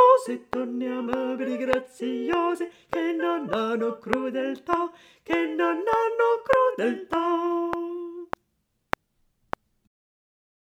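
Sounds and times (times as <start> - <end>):
tenor and bass voices: 0.0 - 8.4.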